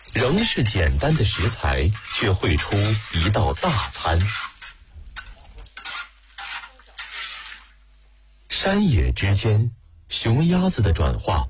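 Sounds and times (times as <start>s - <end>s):
stir-frying scallion ginger garlic and chili: 0.0s - 8.3s
speech: 0.1s - 4.5s, 8.6s - 11.4s.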